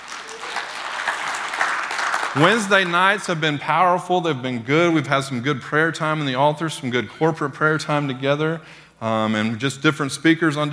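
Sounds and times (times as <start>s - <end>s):
audience clapping: 0.0s - 3.2s
speech: 2.3s - 10.7s.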